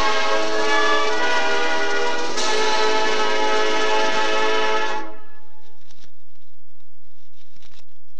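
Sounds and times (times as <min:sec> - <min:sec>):
senior high school band playing: 0:00.0 - 0:05.4.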